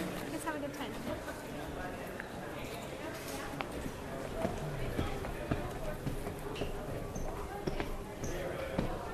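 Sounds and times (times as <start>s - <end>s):
crowd chatter and voices: 0.0s - 9.1s
footsteps climbing a staircase in the EMP museum: 4.3s - 9.1s.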